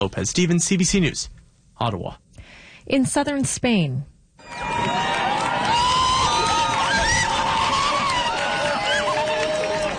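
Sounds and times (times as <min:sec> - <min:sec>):
speech: 0:00.0 - 0:02.2, 0:02.8 - 0:05.0
crowds in southern Spain cheering during a total solar eclipse: 0:04.4 - 0:09.9.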